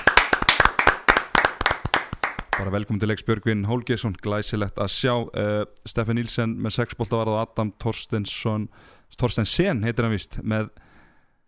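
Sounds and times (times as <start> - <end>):
audience clapping for players: 0.0 - 2.8
speech: 2.6 - 10.9.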